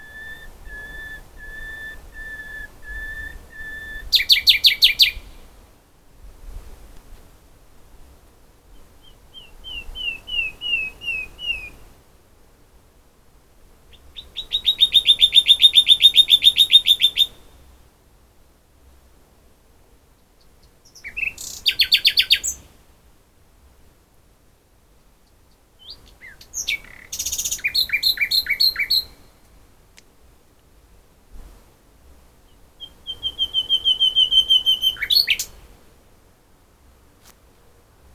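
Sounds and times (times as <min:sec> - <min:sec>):
common nightingale song: 0:00.0 - 0:05.6, 0:08.7 - 0:11.9, 0:13.8 - 0:17.8, 0:20.1 - 0:22.8, 0:25.1 - 0:29.6, 0:32.4 - 0:35.7.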